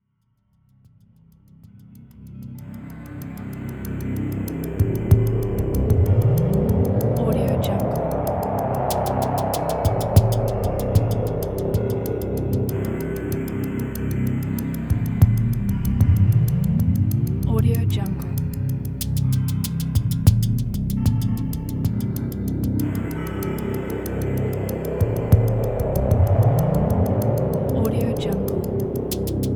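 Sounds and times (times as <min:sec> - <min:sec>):
dark industrial music: 0:02.1 - 0:29.5.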